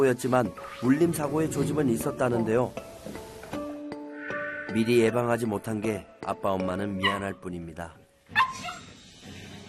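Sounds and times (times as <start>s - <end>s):
speech: 0.0s - 3.2s, 4.7s - 8.0s
dog yipping barks and whimpers: 7.0s - 7.2s, 8.4s - 8.9s.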